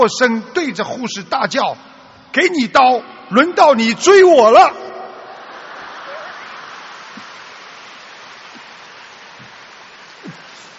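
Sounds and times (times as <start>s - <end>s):
speech: 0.0s - 4.8s
audience applause: 5.1s - 10.7s.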